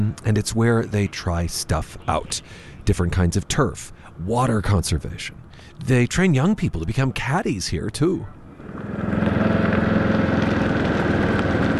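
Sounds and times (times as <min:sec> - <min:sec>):
speech: 0:00.1 - 0:08.9
golf cart motor running: 0:08.5 - 0:11.7.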